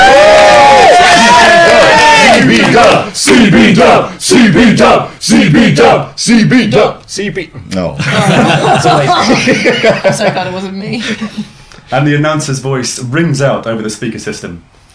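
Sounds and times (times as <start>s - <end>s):
wrestling audience cheering: 0.0s - 3.4s
speech: 2.8s - 14.8s
laughter: 8.0s - 11.6s.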